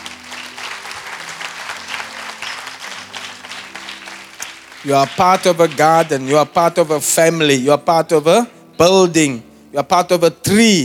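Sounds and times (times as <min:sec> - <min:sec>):
audience clapping: 0:00.0 - 0:07.0
speech: 0:04.8 - 0:10.8.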